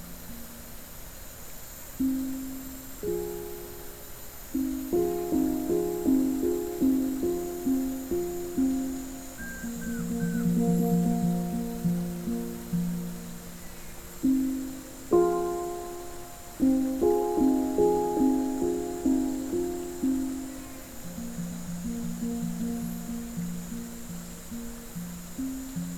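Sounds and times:
rainforest waterfall: 0.0 - 25.9
hang drum: 4.6 - 24.3.

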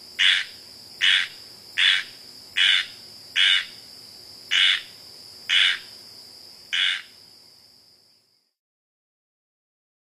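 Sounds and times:
squirrel treefrog calling in North America: 0.2 - 3.8, 4.5 - 6.0, 6.7 - 7.2.

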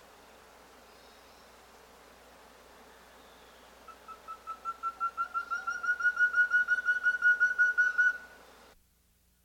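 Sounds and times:
Black-headed antthrush call in South America: 3.9 - 8.4.

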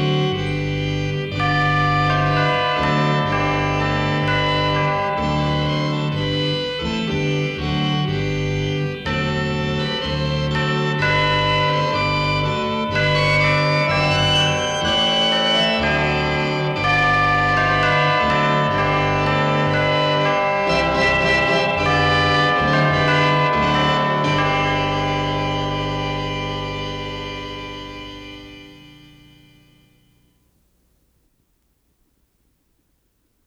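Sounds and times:
Christmas organ music: 0.0 - 30.5
Christmas chimes: 1.4 - 7.5, 11.0 - 30.4.

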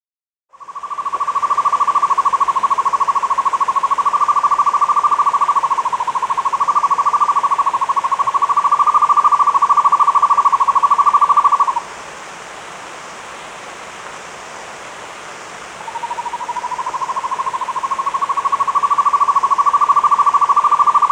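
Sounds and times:
buff-fronted owl trilling in the Andes: 0.7 - 11.8, 15.9 - 21.0.

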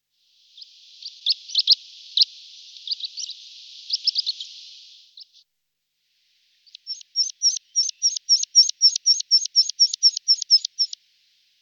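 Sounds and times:
Meadow pipit Anthus pratensis singing: 0.0 - 5.5, 6.1 - 11.6.

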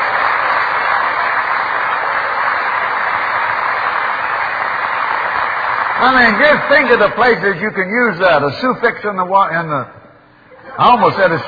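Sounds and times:
weak applause: 0.0 - 7.6
speech: 6.0 - 10.0, 10.8 - 11.4.

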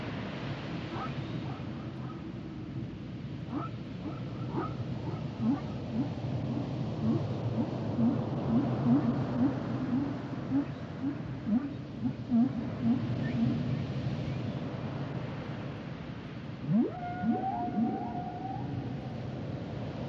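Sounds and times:
continuous hiss: 0.0 - 20.0
whale upsweeping chirps: 5.4 - 13.7, 16.7 - 19.2.

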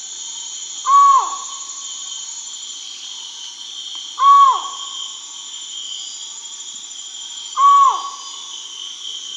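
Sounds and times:
Collared forest-falcon Micrastur semitorquatus calls in the Amazon, Peru: 0.8 - 1.5, 4.2 - 4.8, 7.6 - 8.2.

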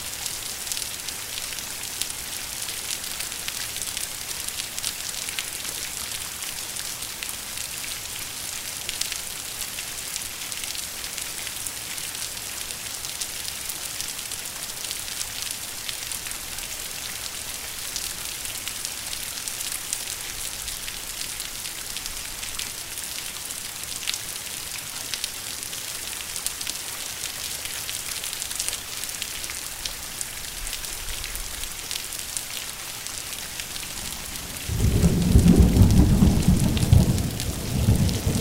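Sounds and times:
thunderstorm rain: 33.7 - 38.4.

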